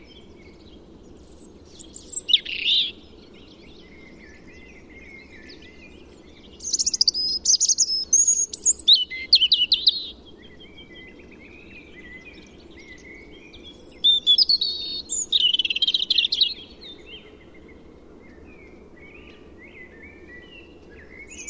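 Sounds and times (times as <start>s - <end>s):
European robin song: 0.0s - 21.4s
steady low background hiss: 0.0s - 21.4s.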